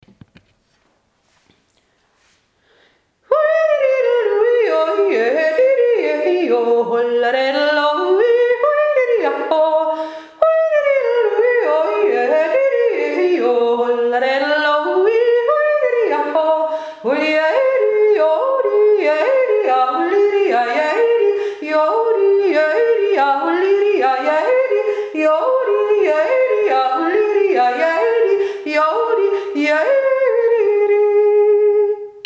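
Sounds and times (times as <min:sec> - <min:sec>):
fast Tyrolean yodeling: 0:03.3 - 0:32.2.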